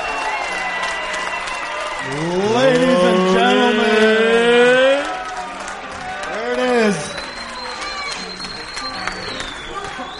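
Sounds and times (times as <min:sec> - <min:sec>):
crowd applause: 0:00.0 - 0:10.1
speech: 0:02.0 - 0:02.9
thin whistle-like tone: 0:07.0 - 0:10.1.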